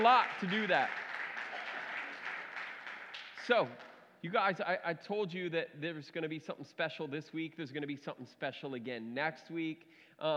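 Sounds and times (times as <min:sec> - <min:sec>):
speech: 0:00.0 - 0:01.0, 0:03.5 - 0:10.3
audience applause: 0:00.0 - 0:04.0.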